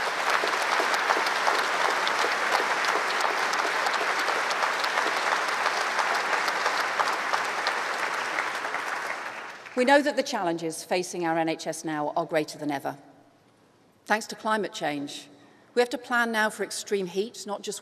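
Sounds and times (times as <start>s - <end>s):
audience applauding: 0.0s - 9.8s
speech: 9.8s - 13.1s, 14.1s - 17.8s.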